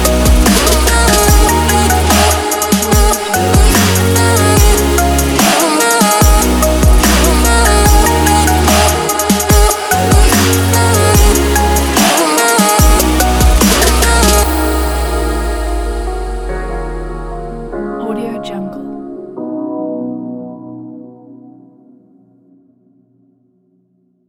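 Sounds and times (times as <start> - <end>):
future bass music: 0.0 - 19.0.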